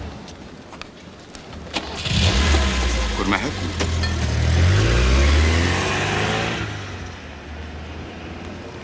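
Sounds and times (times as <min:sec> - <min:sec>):
car engine starting with a warm clutch: 0:01.7 - 0:07.1
speech: 0:03.3 - 0:04.1.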